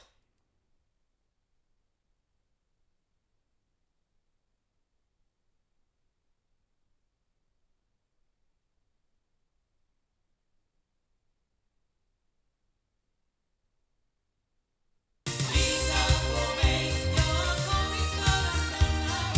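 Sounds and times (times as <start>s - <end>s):
loudspeakers: 15.4s - 19.3s.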